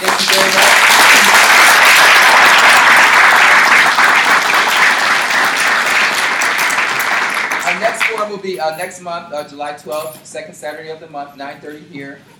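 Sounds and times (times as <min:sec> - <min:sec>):
audience applause: 0:00.0 - 0:08.3
speech: 0:08.2 - 0:12.3.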